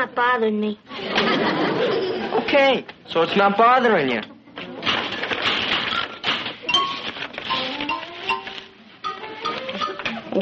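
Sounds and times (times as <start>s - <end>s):
speech: 0.0s - 4.3s
laughter: 0.9s - 2.5s
typewriter typing: 4.9s - 8.7s
ringing metallic pings: 6.0s - 10.4s.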